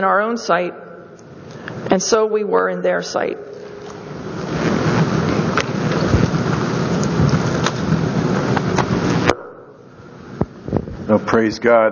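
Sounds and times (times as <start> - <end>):
speech: 0.0 - 0.8, 1.9 - 3.6, 11.1 - 11.8
steady dense heavy rain: 4.0 - 9.3.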